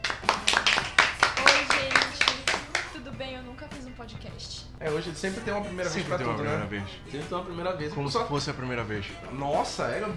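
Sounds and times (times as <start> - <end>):
applause for the guest: 0.0 - 3.0
speech: 4.0 - 10.1.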